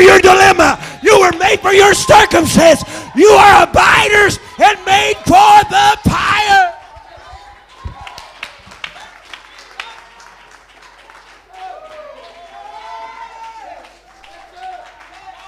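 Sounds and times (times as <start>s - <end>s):
crowd cheering: 0.0s - 15.4s
audience clapping hands: 0.9s - 1.7s, 6.7s - 15.4s
speech: 1.6s - 6.7s.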